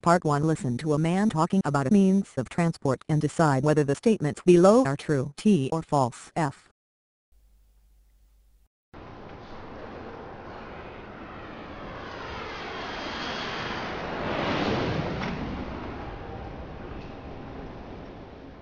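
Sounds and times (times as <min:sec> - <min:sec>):
speech: 0:00.0 - 0:06.7
aircraft engine roar at an airport: 0:09.0 - 0:18.6.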